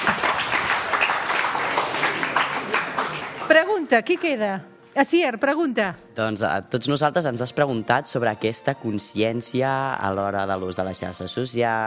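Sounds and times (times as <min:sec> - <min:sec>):
audience applause: 0:00.0 - 0:03.8
speech: 0:03.9 - 0:11.8.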